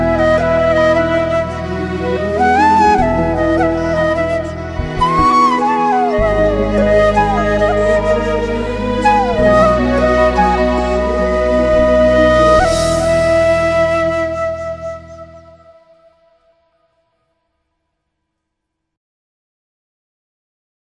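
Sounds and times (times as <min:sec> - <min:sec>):
sad instrumental music: 0:00.0 - 0:16.7.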